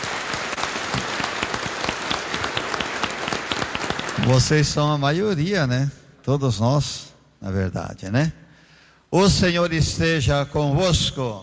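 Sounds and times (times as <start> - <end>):
applause: 0.0 - 5.0
speech: 4.3 - 8.4, 9.1 - 11.4.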